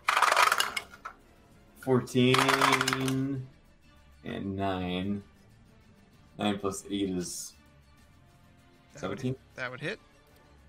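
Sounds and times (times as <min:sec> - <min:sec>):
dice clattering across a table during a tabletop role-playing game: 0:00.0 - 0:01.2, 0:02.3 - 0:03.3
speech: 0:01.8 - 0:03.6, 0:04.2 - 0:05.3, 0:06.4 - 0:07.6, 0:09.0 - 0:10.1.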